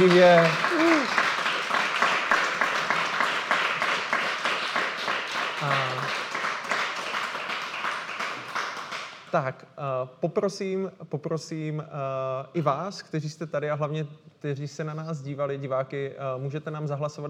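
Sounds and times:
speech: 0:00.0 - 0:00.7, 0:09.3 - 0:17.2
live audience applause: 0:00.0 - 0:09.1.

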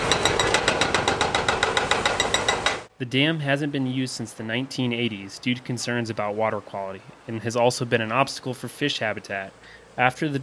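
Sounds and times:
jackhammer pounding concrete in dam demolition: 0:00.0 - 0:02.9
speech: 0:03.0 - 0:10.4.

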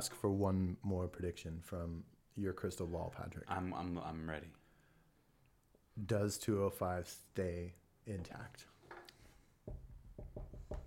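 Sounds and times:
speech: 0:00.0 - 0:04.6, 0:06.0 - 0:09.0
knocking on wood: 0:09.7 - 0:10.8.

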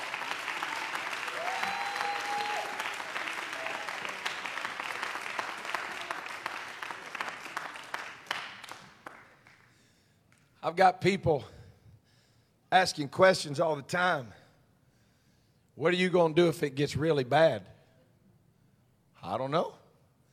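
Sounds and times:
audience clapping: 0:00.0 - 0:10.5
speech: 0:10.7 - 0:11.6, 0:12.7 - 0:14.4, 0:15.8 - 0:17.7, 0:19.3 - 0:19.8.

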